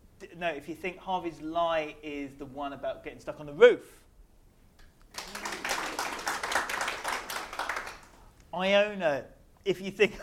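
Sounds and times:
speech: 0.4 - 4.0, 8.6 - 10.2
audience clapping: 5.1 - 8.3.

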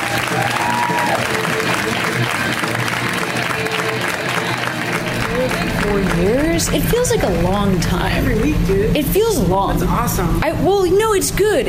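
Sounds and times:
audience clapping to welcome a comedian at a comedy show: 0.0 - 8.5
crowd voices at a comedy show: 0.0 - 11.6
speech: 5.9 - 11.6.

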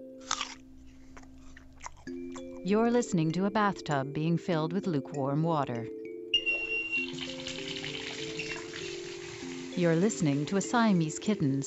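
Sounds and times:
biting and chewing a Macintosh apple: 0.0 - 2.7
speech: 2.6 - 6.0, 9.8 - 11.6.

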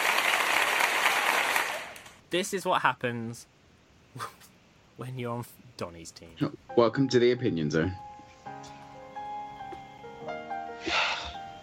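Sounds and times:
group applause: 0.0 - 2.2
speech: 2.3 - 3.6, 4.2 - 4.4, 5.0 - 8.8.

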